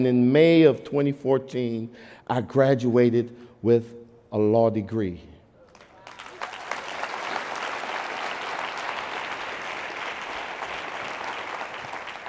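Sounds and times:
speech: 0.0s - 5.3s
audience applause: 5.8s - 12.2s.

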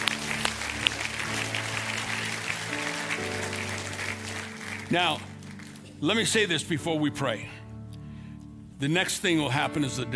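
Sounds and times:
audience applause: 0.0s - 5.9s
speech: 4.9s - 5.3s, 6.0s - 7.6s, 8.8s - 10.1s.

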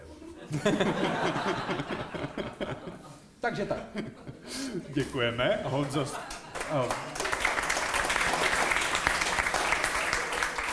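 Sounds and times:
laughter: 0.0s - 7.1s
speech: 0.5s - 7.2s
audience clapping: 5.7s - 10.7s.

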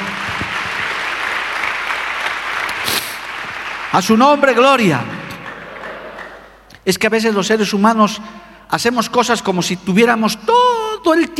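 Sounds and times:
audience applauding: 0.0s - 6.7s
speech: 3.9s - 5.2s, 6.9s - 11.3s.

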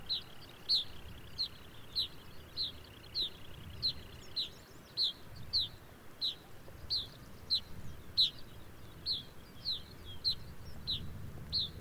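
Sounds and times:
Arctic birds chirping: 0.0s - 11.8s.

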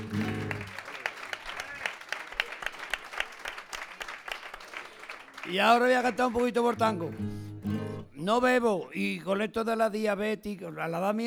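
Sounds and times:
audience ovation applause: 0.0s - 6.4s
speech: 5.5s - 7.4s, 8.2s - 11.2s.

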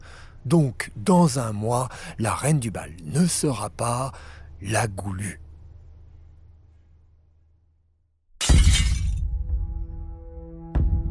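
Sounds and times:
speech: 0.4s - 5.4s
drinking glass smashing against a dressing-room wall: 8.4s - 9.2s.

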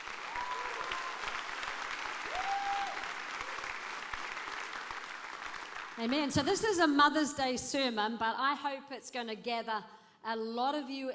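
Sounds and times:
audience clapping: 0.0s - 6.8s
speech: 6.0s - 11.1s.

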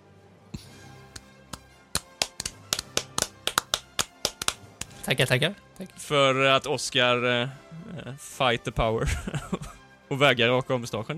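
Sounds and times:
hand clapping: 1.1s - 5.0s
speech: 5.0s - 11.1s
laughter: 9.0s - 9.8s.

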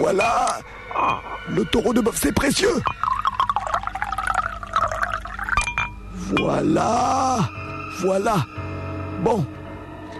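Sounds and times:
speech: 0.0s - 3.1s, 6.3s - 8.6s, 9.2s - 9.6s
liquid pouring into a bottle: 2.8s - 5.7s.

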